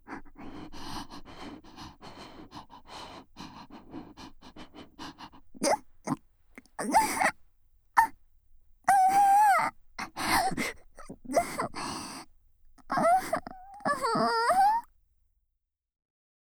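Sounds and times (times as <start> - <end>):
cute-voiced breathing close to the ear: 0.0 - 5.8, 6.8 - 7.3, 8.9 - 14.8
cute-voiced person panting: 0.0 - 5.8, 6.8 - 7.3, 8.9 - 12.2.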